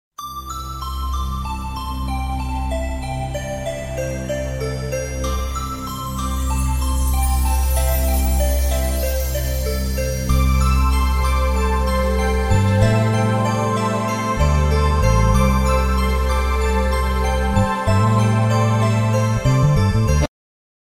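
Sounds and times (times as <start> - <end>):
chimes: 0.2 - 20.2.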